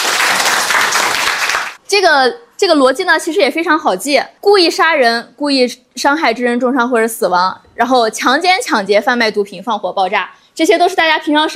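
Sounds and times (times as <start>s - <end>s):
students in a class applauding: 0.0s - 1.8s
speech: 1.9s - 11.5s.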